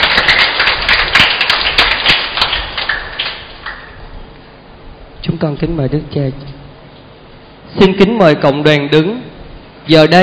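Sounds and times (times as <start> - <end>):
audience applauding: 0.0 - 4.0
speech: 5.4 - 6.6, 7.7 - 10.2.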